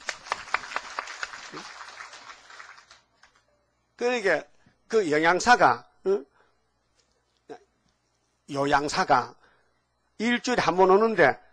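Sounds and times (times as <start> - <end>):
audience clapping: 0.0 - 3.4
speech: 1.5 - 1.8, 4.0 - 6.3, 8.5 - 9.4, 10.2 - 11.4.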